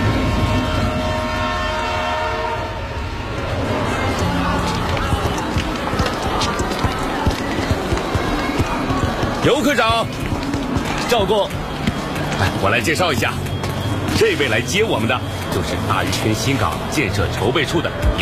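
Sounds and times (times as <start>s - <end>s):
sustained horn-like tones: 0.0s - 4.7s
passenger train rumbling with wheels clattering on rails: 0.0s - 18.1s
speech: 9.4s - 10.2s, 11.1s - 11.6s, 12.4s - 13.4s, 14.2s - 18.1s.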